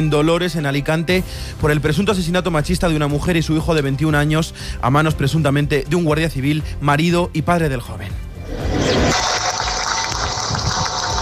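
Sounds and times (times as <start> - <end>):
speech: 0.0 - 9.3
crowd applauding: 9.0 - 11.1.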